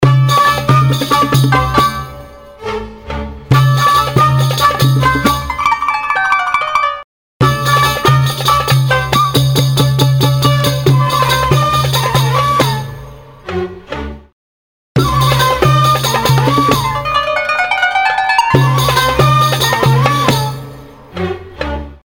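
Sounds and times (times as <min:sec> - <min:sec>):
oriental style music: 0:00.0 - 0:14.3, 0:15.0 - 0:22.0.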